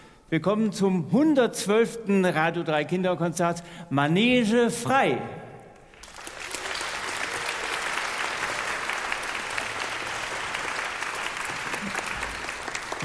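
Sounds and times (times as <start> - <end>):
speech: 0.3 - 5.4
audience applause at children's concert: 5.9 - 13.0.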